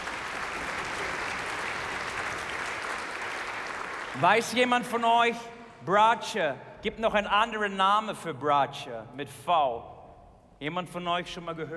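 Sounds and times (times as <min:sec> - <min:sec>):
audience applause: 0:00.0 - 0:04.2
speech: 0:04.2 - 0:09.9, 0:10.6 - 0:11.7.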